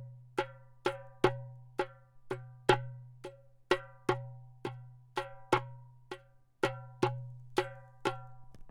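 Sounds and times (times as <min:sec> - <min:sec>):
anechoic darbuka playing dum tek tek: 0:00.0 - 0:08.5.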